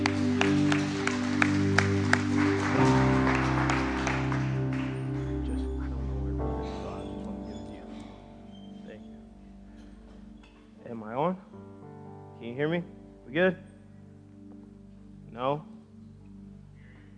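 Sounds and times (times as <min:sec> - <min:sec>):
audience clapping in praise: 0:00.0 - 0:07.5
sustained keyboard chords: 0:00.0 - 0:17.1
speech: 0:12.6 - 0:13.7.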